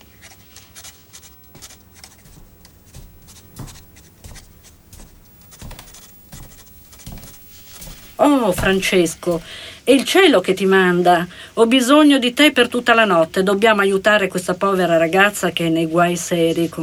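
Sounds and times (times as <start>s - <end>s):
pen scratching on paper writing a note: 0.0s - 9.5s
speech: 8.2s - 16.8s.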